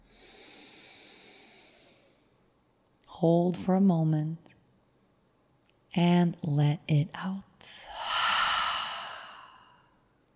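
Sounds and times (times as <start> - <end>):
deep breath in through the nose in a guided breathing exercise: 0.1 - 2.2, 7.9 - 9.9
speech: 3.2 - 4.6, 6.0 - 8.0.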